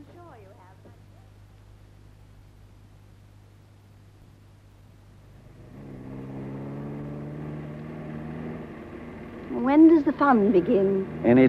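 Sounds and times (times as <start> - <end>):
car driven fast along a lonely stretch of road: 5.0 - 11.4
speech: 9.8 - 11.4.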